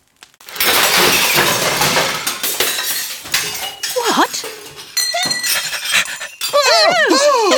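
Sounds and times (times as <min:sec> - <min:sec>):
plates breaking: 0:00.4 - 0:07.4.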